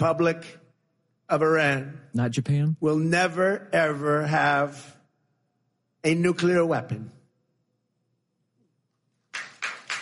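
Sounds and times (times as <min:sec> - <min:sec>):
speech: 0:00.0 - 0:00.6, 0:01.3 - 0:05.0, 0:06.0 - 0:07.2
applause: 0:09.2 - 0:10.0.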